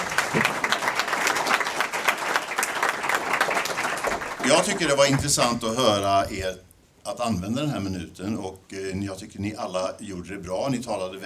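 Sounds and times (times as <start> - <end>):
audience applause: 0.0 - 5.5
speech: 4.5 - 11.2.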